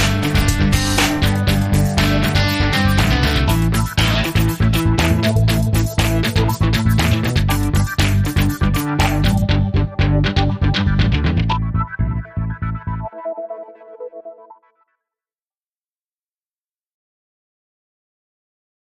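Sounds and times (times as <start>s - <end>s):
break rock promo music: 0.0s - 13.0s.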